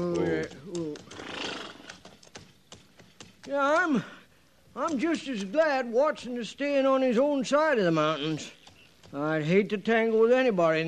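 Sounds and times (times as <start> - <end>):
hoof clicks: 0.0 - 4.1, 8.0 - 9.4
horse neighing: 0.8 - 2.0
horse snorting: 1.1 - 2.0
speech: 4.8 - 10.8.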